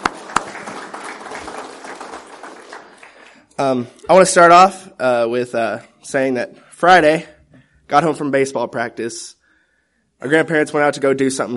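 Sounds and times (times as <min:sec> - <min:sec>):
audience applause: 0:00.0 - 0:03.5
speech: 0:03.6 - 0:07.3, 0:07.9 - 0:09.4, 0:10.2 - 0:11.5.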